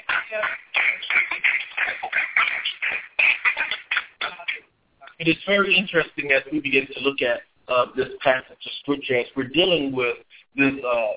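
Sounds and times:
audience clapping hands: 0.0s - 4.6s
speech: 5.3s - 11.1s.

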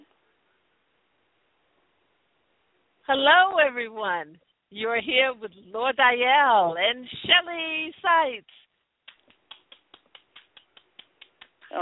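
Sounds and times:
speech: 3.1s - 8.6s
sharp crisp hand claps: 9.0s - 11.8s.

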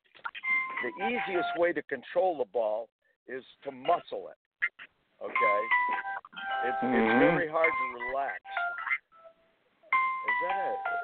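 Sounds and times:
cell phone ringing: 0.4s - 1.6s, 5.3s - 11.0s
speech: 0.8s - 4.4s, 5.2s - 8.5s.

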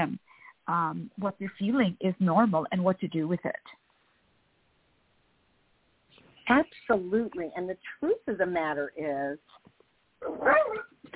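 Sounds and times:
speech: 0.0s - 3.8s, 6.5s - 11.1s
dog barking and whining at a FedEx delivery man outside a window: 10.2s - 11.1s.

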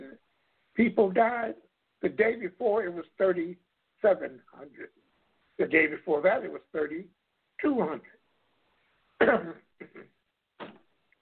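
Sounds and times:
speech: 0.8s - 5.0s, 5.6s - 8.2s, 9.2s - 10.1s
man with a cold coughing: 9.2s - 10.8s.

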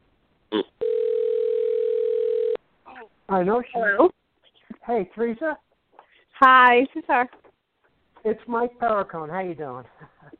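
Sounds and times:
telephone ringing on the line: 0.8s - 2.6s
speech: 3.3s - 4.2s, 4.9s - 5.7s, 6.4s - 7.4s, 8.2s - 10.1s.

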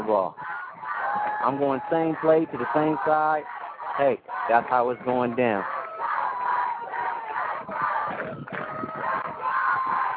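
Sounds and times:
stadium crowd cheering loudly: 0.0s - 10.1s
speech: 0.1s - 0.6s, 1.2s - 5.8s.

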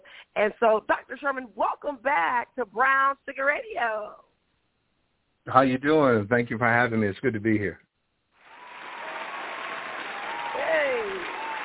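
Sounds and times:
speech: 0.4s - 4.2s, 5.5s - 7.8s
applause: 8.4s - 11.6s.

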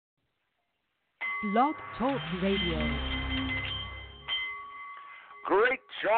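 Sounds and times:
Nepalese meditation bowl chiming: 1.2s - 6.1s
speech: 1.4s - 3.1s, 5.5s - 6.1s.

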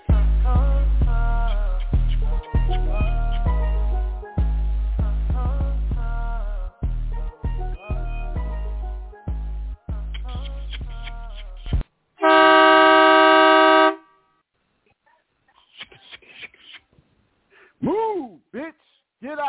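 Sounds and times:
music: 0.0s - 11.8s
long loud vehicle horn blast: 12.2s - 14.1s.

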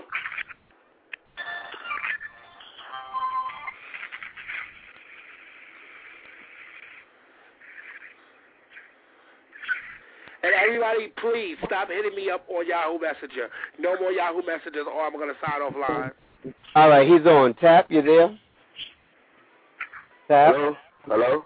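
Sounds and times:
cell phone ringing: 1.4s - 3.9s
speech: 10.5s - 18.9s, 20.3s - 21.4s.

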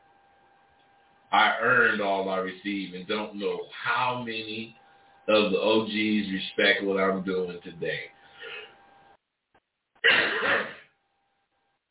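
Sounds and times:
speech: 1.3s - 8.2s
person clearing throat: 10.0s - 10.8s.

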